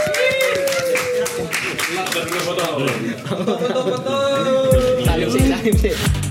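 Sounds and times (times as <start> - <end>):
audience applause: 0.0 - 3.2
speech: 2.5 - 4.3, 5.7 - 6.2
laughter: 2.7 - 5.8.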